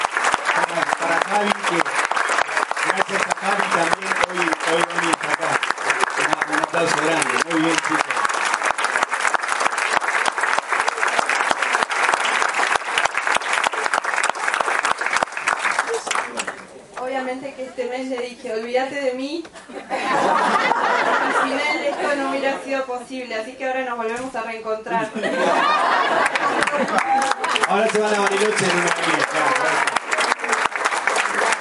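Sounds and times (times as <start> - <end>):
audience applause: 0.0 - 16.7, 25.4 - 31.6
speech: 18.4 - 20.4, 21.5 - 29.9
laughter: 19.6 - 22.7, 24.9 - 31.6.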